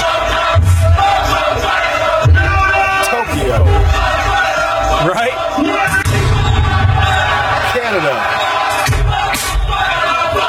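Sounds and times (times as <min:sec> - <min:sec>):
large crowd chanting and shouting along to song: 0:00.0 - 0:10.4
laughter: 0:03.0 - 0:03.9, 0:07.6 - 0:08.6.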